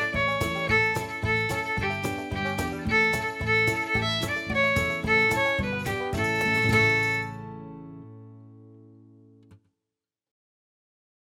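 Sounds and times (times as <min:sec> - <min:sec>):
violin: 0:00.0 - 0:07.9.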